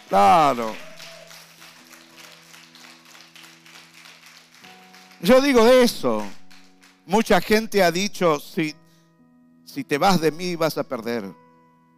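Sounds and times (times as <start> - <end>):
audience applause: 0.0 - 7.0
speech: 0.1 - 0.9, 5.2 - 6.4, 7.1 - 8.8, 9.7 - 11.4.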